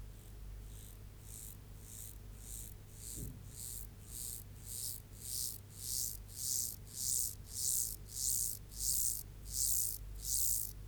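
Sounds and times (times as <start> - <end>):
mottled grasshopper song of crisp hissing buzzes: 0.2 - 10.7.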